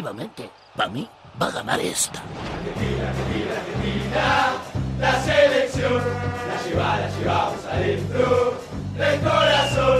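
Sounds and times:
speech: 0.0 - 9.9
football fans chanting: 2.2 - 9.9.

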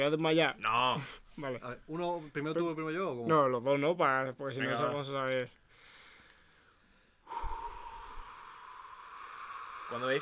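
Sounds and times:
speech: 0.0 - 5.6, 9.9 - 10.2
person blowing out a long breath until lungs empty: 7.2 - 10.2.

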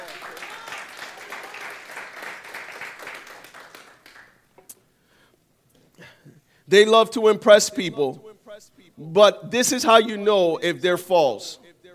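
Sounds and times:
audience applause: 0.0 - 4.4
speech: 6.7 - 8.3, 9.0 - 11.6.

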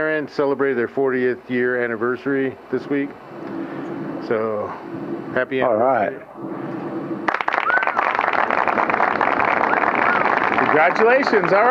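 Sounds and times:
speech: 0.0 - 3.6, 4.2 - 6.5, 10.8 - 11.7
applause: 7.3 - 11.7.

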